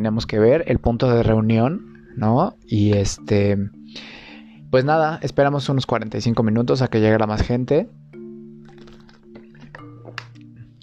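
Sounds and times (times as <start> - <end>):
speech: 0.0 - 8.0
person drinking a sip of water: 8.6 - 10.8.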